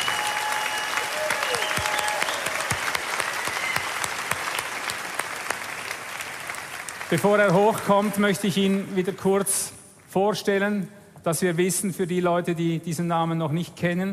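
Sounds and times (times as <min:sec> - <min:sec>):
audience applause: 0:00.0 - 0:08.9
speech: 0:07.1 - 0:14.1.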